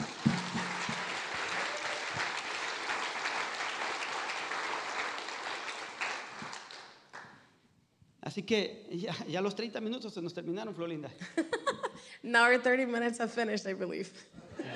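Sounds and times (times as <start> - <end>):
group applauding: 0.0 - 7.5
speech: 8.3 - 14.4.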